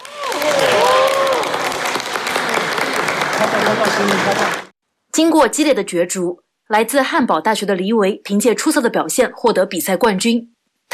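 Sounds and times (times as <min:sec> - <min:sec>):
audience applause: 0:00.0 - 0:04.8
speech: 0:03.7 - 0:04.6, 0:05.2 - 0:10.9.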